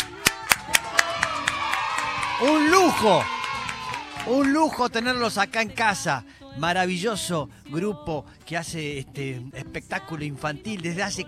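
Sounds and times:
applause: 0.0 - 5.3
speech: 2.4 - 3.4, 4.2 - 11.2.

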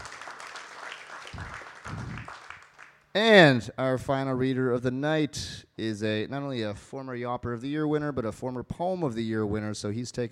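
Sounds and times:
audience applause: 0.0 - 3.0
speech: 3.2 - 10.3.

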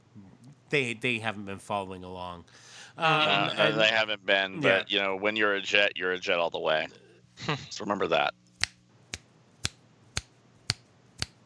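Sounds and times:
speech: 0.7 - 8.4
laughter: 2.9 - 5.0, 6.8 - 8.0
finger snapping: 8.6 - 11.4.

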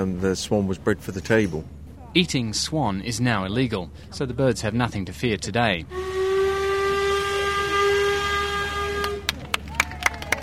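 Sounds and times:
speech: 0.0 - 6.2
old-fashioned steamboat whistle: 5.8 - 9.4.

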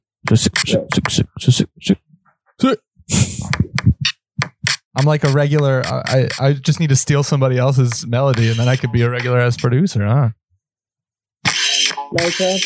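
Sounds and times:
speech: 0.3 - 2.1, 2.6 - 3.7, 5.0 - 10.4, 12.1 - 12.6
drum beat played on a phone beat pad: 8.3 - 9.4.

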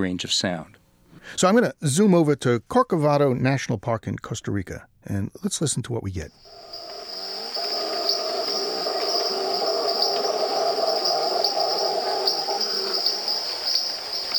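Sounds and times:
speech: 0.0 - 6.8
steady high insect drone: 6.3 - 14.3
tree frogs peeping: 6.3 - 14.3
howler monkey roar: 6.5 - 14.3.

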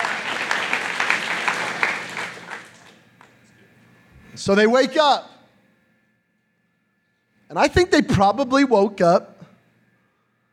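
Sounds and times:
audience clapping: 0.0 - 3.4
speech: 4.4 - 5.3, 7.6 - 9.3.

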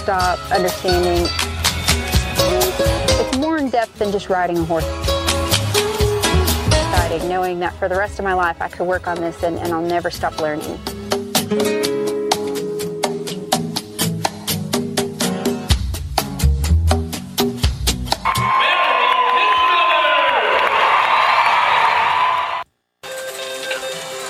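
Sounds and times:
speech: 0.0 - 1.6, 2.4 - 5.1, 6.9 - 10.9, 11.5 - 11.8
upbeat music: 0.0 - 18.8
rodeo crowd cheering and whooping: 18.2 - 22.6.

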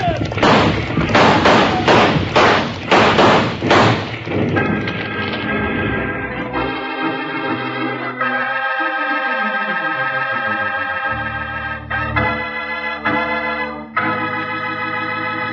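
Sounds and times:
rockslide crashing down a hill: 0.0 - 5.6
sustained musical tones: 4.2 - 15.5.

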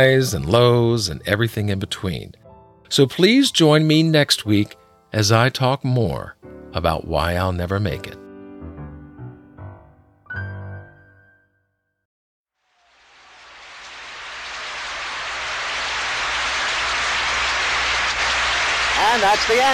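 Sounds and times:
speech: 0.0 - 8.2, 19.2 - 19.7
opening-night Broadway audience clapping in a standing ovation: 13.0 - 19.7.

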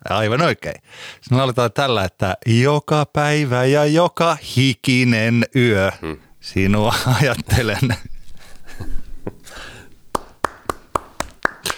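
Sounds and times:
speech: 0.1 - 8.1
breathy rustling and murmur: 6.1 - 11.7
person clapping: 6.2 - 11.7
laughter: 6.5 - 11.7.

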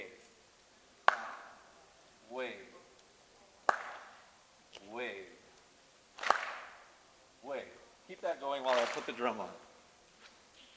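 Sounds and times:
sharp hand clap: 1.0 - 1.6, 3.7 - 4.2, 6.2 - 6.9, 8.7 - 9.4
speech: 8.2 - 9.6.

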